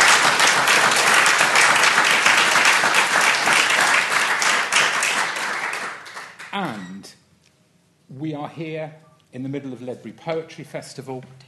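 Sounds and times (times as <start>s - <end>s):
audience applause: 0.0s - 6.6s
speech: 8.2s - 11.4s.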